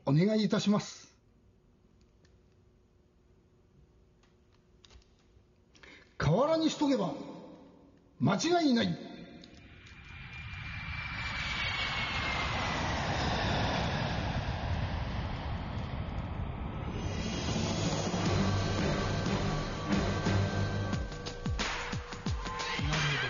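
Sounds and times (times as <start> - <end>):
speech: 0.1 - 1.1, 6.6 - 7.3, 8.2 - 9.1
airplane taking off: 9.6 - 23.2.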